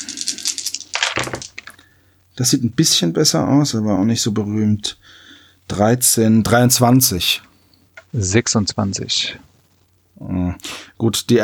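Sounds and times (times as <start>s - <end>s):
dice being rolled: 0.0s - 1.8s
speech: 2.4s - 7.5s, 8.1s - 9.5s, 10.2s - 11.4s.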